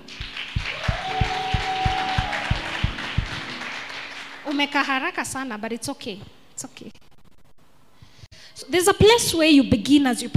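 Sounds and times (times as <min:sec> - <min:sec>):
audience applause: 0:00.0 - 0:04.7
speech: 0:04.5 - 0:07.0, 0:08.7 - 0:10.3.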